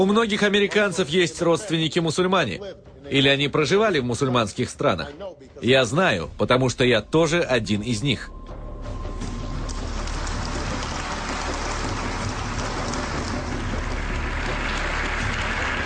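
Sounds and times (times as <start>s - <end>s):
speech: 0.0s - 8.4s
thunderous applause from a large crowd: 9.6s - 15.8s.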